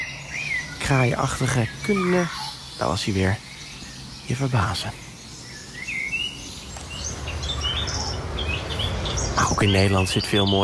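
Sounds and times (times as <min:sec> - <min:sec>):
Eurasian blackcap singing in a park in Leiderdorp, Netherlands: 0:00.0 - 0:10.6
speech: 0:00.9 - 0:03.5, 0:04.3 - 0:05.0, 0:09.4 - 0:10.6.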